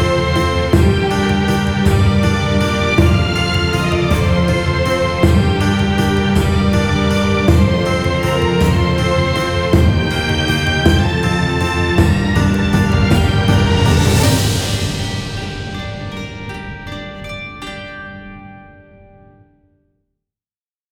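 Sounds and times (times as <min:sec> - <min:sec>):
medieval ambient music: 0:00.0 - 0:19.3.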